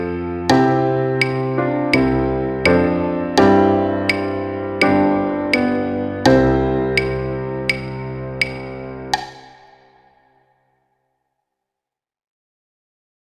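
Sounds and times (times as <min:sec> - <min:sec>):
Christmas carol music: 0:00.0 - 0:09.8.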